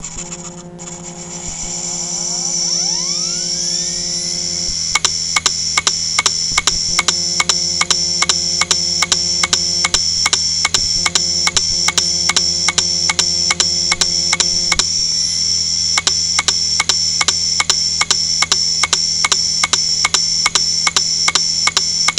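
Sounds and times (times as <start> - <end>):
click: 2.1 - 15.0, 15.9 - 22.1.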